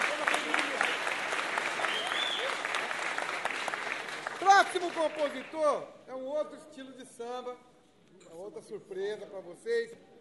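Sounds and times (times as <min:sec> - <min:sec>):
audience applause: 0:00.0 - 0:05.6
speech: 0:04.5 - 0:07.7, 0:08.3 - 0:10.1.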